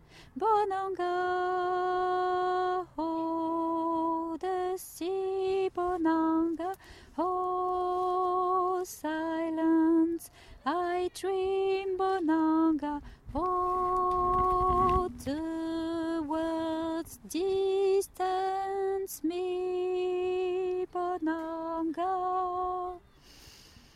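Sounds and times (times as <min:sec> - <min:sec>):
alto voice singing: 0:00.4 - 0:23.1.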